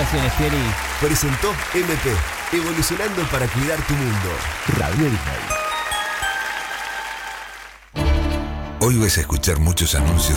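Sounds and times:
speech: 0.0s - 5.6s, 8.8s - 10.3s
applause: 0.0s - 8.0s.

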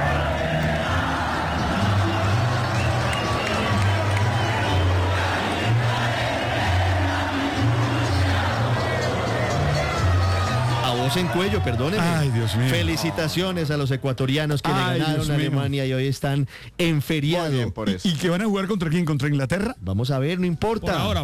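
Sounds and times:
crowd of about 43,000 Colombian fans singing at MetLife Stadium, New York–New Jersey: 0.0s - 13.2s
speech: 11.1s - 21.2s.

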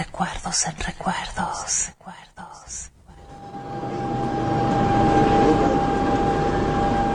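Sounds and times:
speech: 0.2s - 2.0s
steady high whine of a train: 2.9s - 7.1s
train rumble at a railway station: 3.1s - 7.1s.

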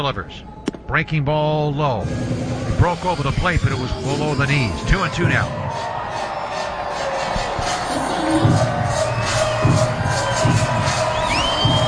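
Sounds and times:
speech: 0.0s - 5.9s, 8.3s - 8.7s
baseball stadium crowd cheering and shouting: 2.6s - 11.8s
whistles: 3.1s - 11.8s.

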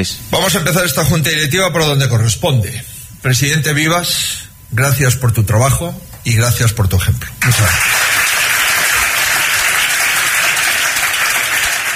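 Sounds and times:
speech: 0.0s - 8.1s
applause outdoors: 7.4s - 11.9s.

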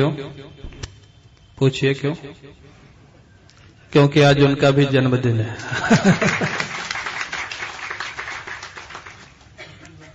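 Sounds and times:
speech: 0.0s - 0.8s, 1.6s - 2.8s, 3.9s - 6.8s
audience applause: 5.7s - 9.6s.

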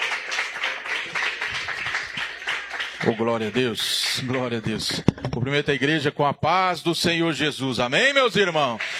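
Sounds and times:
church congregation clapping to welcome a preacher: 0.0s - 5.2s, 8.3s - 8.9s
speech: 3.0s - 8.9s.

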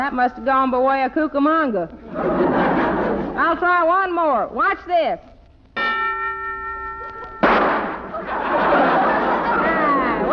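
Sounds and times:
speech: 0.0s - 2.8s, 3.4s - 5.3s
laughter: 1.9s - 3.4s, 8.0s - 10.3s
sustained ringing metallic tone: 5.8s - 8.3s
gunshot: 7.4s - 8.1s.

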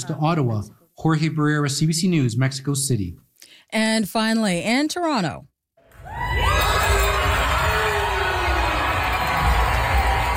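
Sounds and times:
speech: 0.0s - 5.5s
crowd cheering at the Polaris Prize awards ceremony: 5.8s - 10.3s.

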